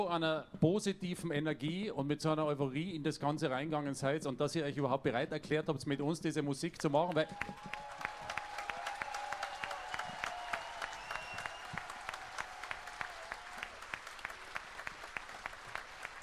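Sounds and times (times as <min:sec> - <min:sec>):
speech: 0:00.0 - 0:07.9
faint concert audience applause: 0:07.1 - 0:16.2.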